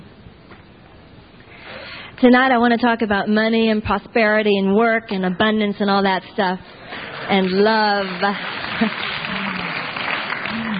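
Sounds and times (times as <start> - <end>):
speech: 2.2 - 9.2
audience applause: 7.0 - 10.7.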